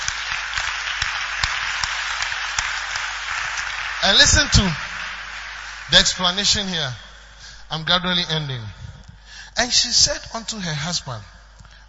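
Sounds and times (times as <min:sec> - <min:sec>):
audience clapping: 0:00.0 - 0:07.6
speech: 0:04.0 - 0:04.8, 0:05.9 - 0:07.0, 0:07.7 - 0:08.8, 0:09.6 - 0:11.4.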